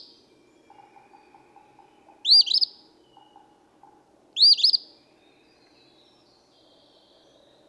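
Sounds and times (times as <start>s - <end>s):
Eastern phoebe fee-bee phrases: 0.7s - 4.8s.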